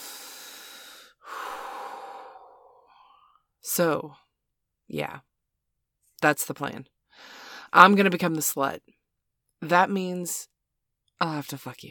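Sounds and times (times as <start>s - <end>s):
deep breathing in and out: 0.0s - 3.4s
speech: 3.7s - 4.2s, 4.9s - 5.3s, 6.2s - 9.0s, 9.6s - 10.5s, 11.2s - 11.8s.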